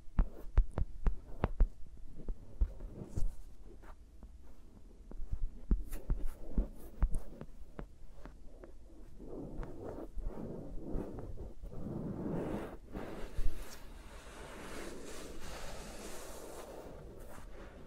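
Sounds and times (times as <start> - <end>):
fingers tapping and thumping on microphones: 0.0 - 10.0
fingers rustling and brushing on microphones: 0.0 - 17.8.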